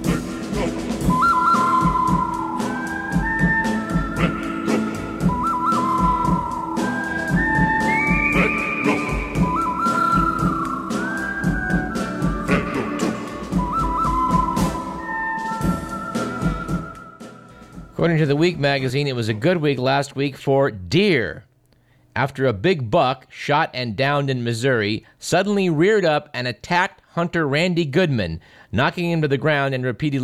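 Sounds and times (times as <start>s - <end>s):
whistled melody: 0.0s - 18.0s
western film theme music with whistled melody: 0.0s - 18.6s
speech: 18.0s - 21.5s, 22.2s - 30.2s.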